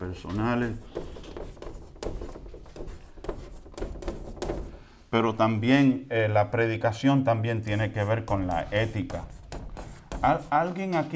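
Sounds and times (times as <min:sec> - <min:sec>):
speech: 0:00.1 - 0:01.0, 0:05.1 - 0:09.4, 0:10.2 - 0:11.1
writing on a blackboard in a classroom: 0:00.4 - 0:04.8, 0:07.5 - 0:11.0.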